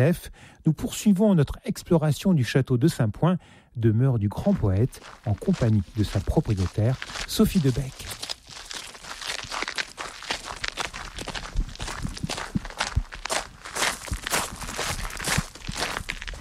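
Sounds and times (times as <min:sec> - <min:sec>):
speech: 0:00.0 - 0:08.3
footsteps on a small tower staircase of Saint-Point castle: 0:04.5 - 0:16.3.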